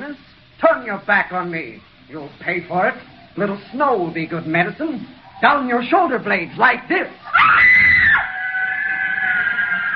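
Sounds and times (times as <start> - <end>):
speech: 0.8 - 7.8
woman screaming with rage: 7.3 - 9.9.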